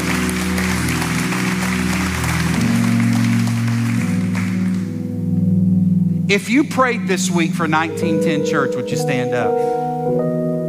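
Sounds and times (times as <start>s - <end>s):
audience applause: 0.0s - 5.0s
speech: 6.3s - 10.5s.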